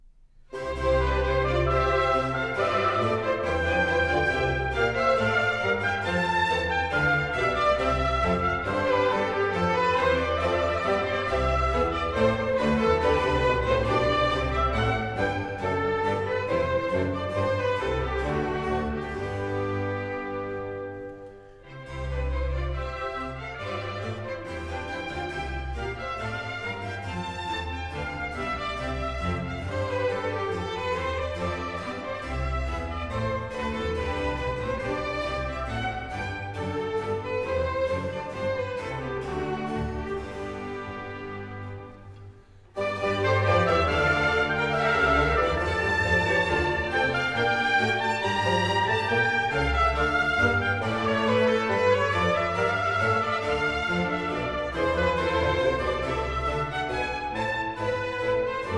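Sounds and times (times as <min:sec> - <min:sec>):
orchestral suite courante: 0:00.0 - 0:58.7.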